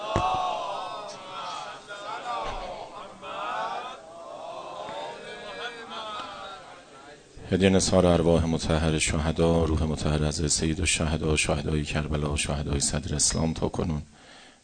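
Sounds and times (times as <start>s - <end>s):
congregation reciting salawat in unison: 0.0s - 7.4s
speech: 7.5s - 14.2s.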